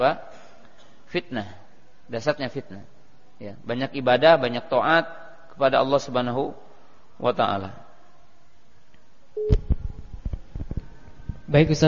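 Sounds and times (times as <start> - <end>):
speech: 0.0 - 0.3, 1.1 - 6.6, 7.2 - 7.8, 11.5 - 11.8
short steady mid-pitched beep on a phone line: 9.4 - 9.6.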